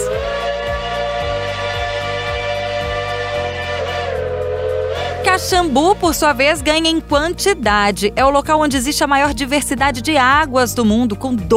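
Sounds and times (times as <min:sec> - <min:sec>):
steam locomotive whistle: 0:00.0 - 0:07.0
speech: 0:05.4 - 0:11.5.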